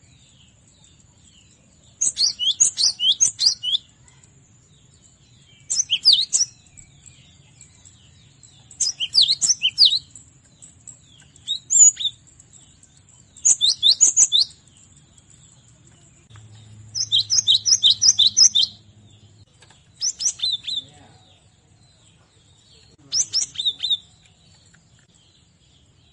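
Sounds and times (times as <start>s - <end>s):
cinereous tit whistling song: 2.0s - 3.9s, 5.6s - 7.0s, 8.7s - 14.7s, 17.0s - 18.8s, 20.0s - 20.8s, 23.0s - 24.1s.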